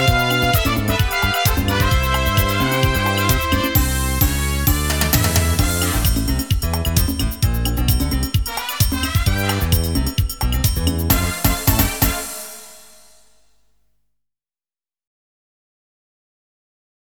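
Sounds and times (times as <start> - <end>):
samba music: 0.0 - 13.3.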